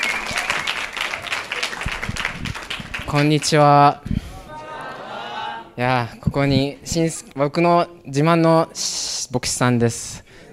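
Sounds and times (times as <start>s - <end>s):
audience applause: 0.0s - 3.5s
speech: 3.1s - 4.2s, 5.8s - 10.5s.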